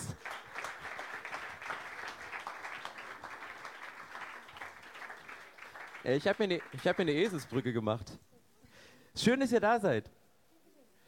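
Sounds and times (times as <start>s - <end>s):
audience applause for guests coming on stage: 0.0s - 7.7s
speech: 6.0s - 8.3s, 9.2s - 10.2s.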